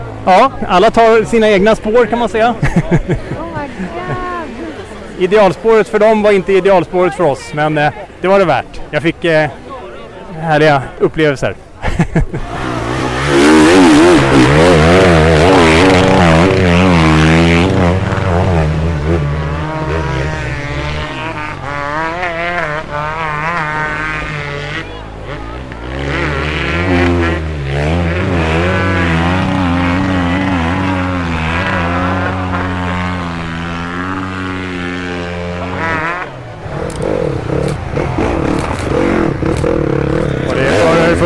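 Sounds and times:
motorcycle engines revving through wet mud: 0.0s - 9.7s, 11.7s - 41.2s
speech: 0.2s - 4.3s, 5.2s - 9.6s, 10.4s - 15.2s
laughter: 2.5s - 5.1s, 11.8s - 12.8s.

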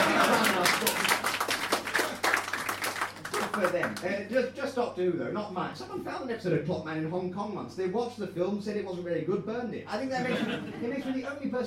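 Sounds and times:
laughter: 0.0s - 2.2s, 10.1s - 11.3s
audience applause: 0.0s - 4.1s
speech: 3.6s - 11.6s.

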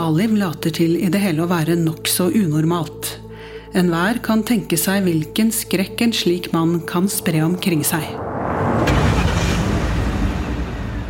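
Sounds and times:
speech: 0.1s - 8.9s
police cars rolling in with low engine rumble: 7.7s - 11.0s
police car tire noise: 7.8s - 11.0s.

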